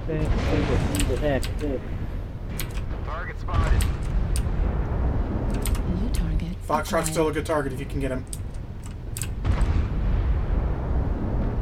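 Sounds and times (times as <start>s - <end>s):
speech: 0.1s - 4.2s, 5.6s - 8.4s
explosion of a UAV shot down in a video game: 0.2s - 5.5s, 9.4s - 11.6s.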